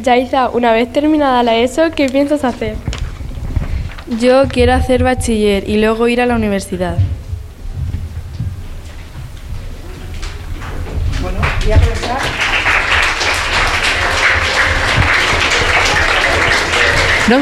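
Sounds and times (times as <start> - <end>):
speech: 0.0 - 2.9, 4.1 - 7.2
murmur and low rumble: 0.7 - 17.3
audience applause: 10.2 - 17.3.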